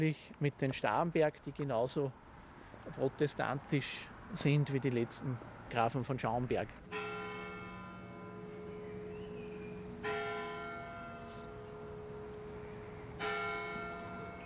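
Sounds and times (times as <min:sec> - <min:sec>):
speech: 0:00.0 - 0:02.2, 0:02.8 - 0:07.0
church bells ringing eleven o'clock: 0:06.8 - 0:14.4.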